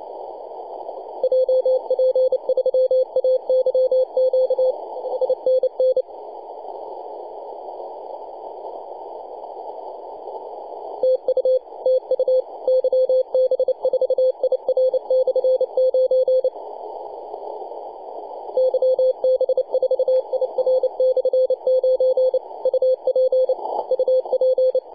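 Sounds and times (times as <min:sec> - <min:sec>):
CW Morse code beeps: 0:01.2 - 0:06.0, 0:11.0 - 0:16.5, 0:18.6 - 0:24.9.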